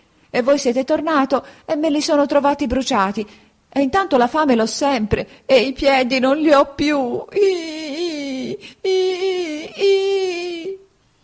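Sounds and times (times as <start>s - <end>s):
speech: 0.3s - 10.3s
voice imitating Pinocchio crying and bawling: 7.3s - 10.8s.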